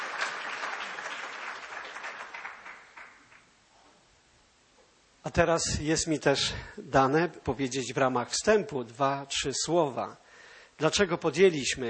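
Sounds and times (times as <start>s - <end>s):
applause: 0.0s - 3.5s
speech: 5.2s - 10.2s, 10.8s - 11.8s.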